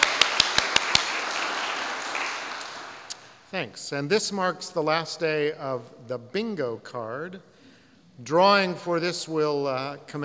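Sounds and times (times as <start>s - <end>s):
audience applause: 0.0s - 3.0s
speech: 3.5s - 7.5s, 8.2s - 10.2s.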